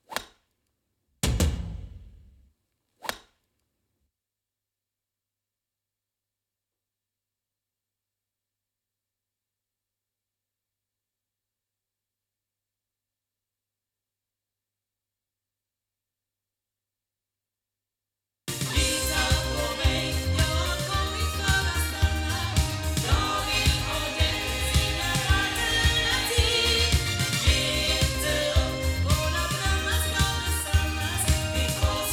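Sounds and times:
ND6000 loudspeakers playing: 18.6s - 32.1s.

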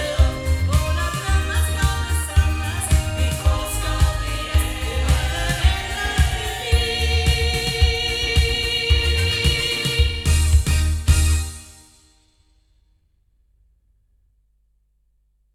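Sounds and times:
loudspeakers: 0.0s - 11.4s.

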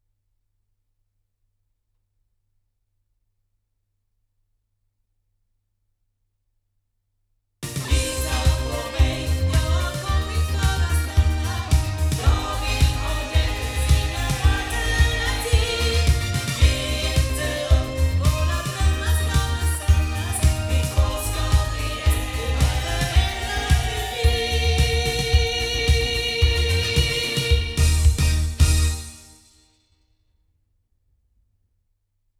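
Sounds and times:
sound from loudspeakers: 7.6s - 29.2s.

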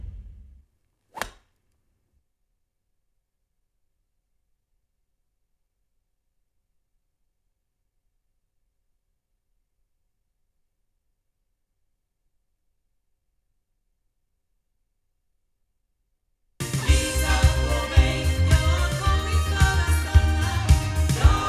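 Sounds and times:
loudspeakers: 16.7s - 21.4s.

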